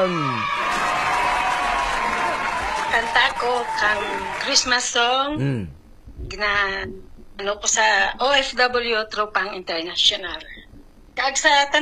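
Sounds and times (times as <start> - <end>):
speech: 0.0 - 0.6, 2.9 - 10.6, 11.2 - 11.8
audience applause for a singer on a radio program: 0.3 - 4.7.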